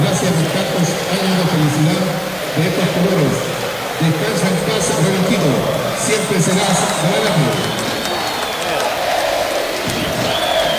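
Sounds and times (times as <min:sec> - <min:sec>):
scattered voices: 0:00.0 - 0:10.7
stadium crowd applauding: 0:00.0 - 0:10.7
faint whistles: 0:06.9 - 0:09.1, 0:09.8 - 0:10.7.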